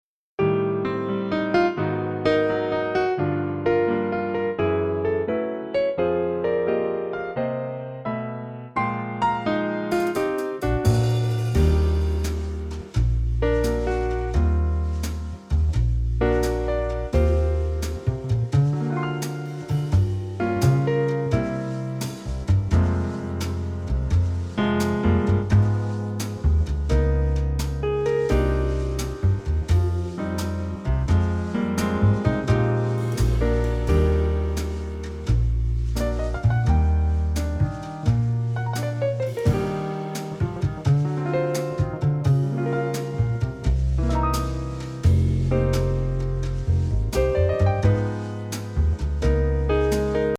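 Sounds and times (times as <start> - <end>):
jazz music: 0.4 - 50.3.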